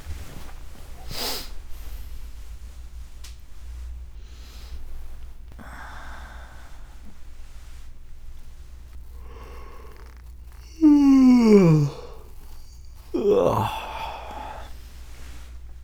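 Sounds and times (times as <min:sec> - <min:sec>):
person making noises: 0:09.2 - 0:14.8.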